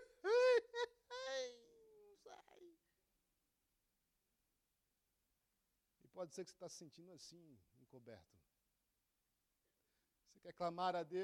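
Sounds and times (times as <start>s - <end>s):
person imitating a stifled scream, as in a nightmare: 0.0s - 2.8s
speech: 6.1s - 8.5s, 10.3s - 11.2s.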